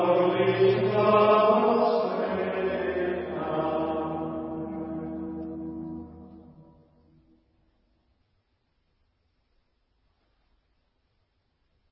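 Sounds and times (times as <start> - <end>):
Gregorian chant: 0.0 - 5.7.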